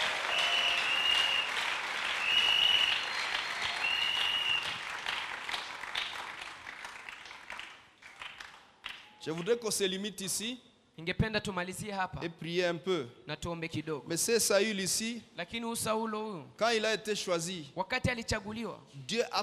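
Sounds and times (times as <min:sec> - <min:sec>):
church congregation applauding to acclaim the Lord: 0:00.0 - 0:09.6
speech: 0:09.2 - 0:19.4.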